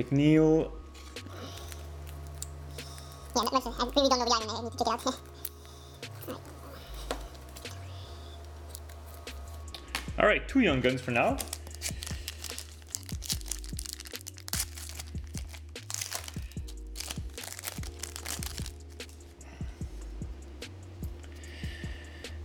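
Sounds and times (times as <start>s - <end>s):
speech: 0.0s - 0.8s, 3.4s - 5.3s, 6.3s - 6.5s, 10.2s - 12.0s
hockey trading card pack wrapper crinkling and tearing: 1.0s - 3.8s, 5.0s - 7.8s, 8.4s - 9.8s, 11.2s - 19.3s.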